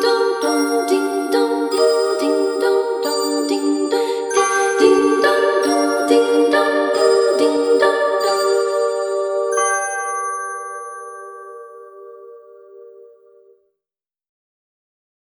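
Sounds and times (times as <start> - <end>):
Christmas orchestra playing a carol: 0.0 - 9.8.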